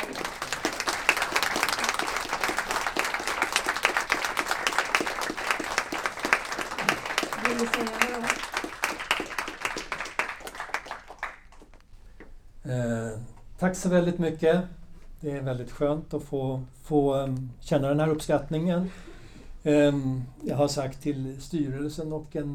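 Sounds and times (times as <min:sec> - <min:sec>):
audience applause: 0:00.0 - 0:11.8
speech: 0:07.6 - 0:08.1, 0:13.6 - 0:22.5.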